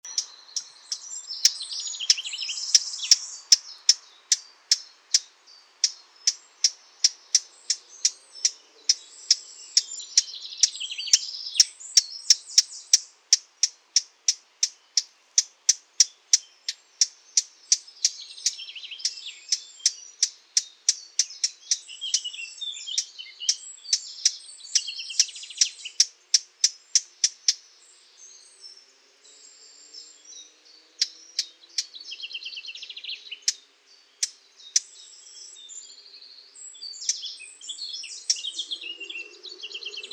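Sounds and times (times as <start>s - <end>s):
bubbling warble of other birdsong: 0.0s - 40.1s
Eurasian blackcap hard tacking notes: 0.1s - 27.6s, 34.2s - 34.9s.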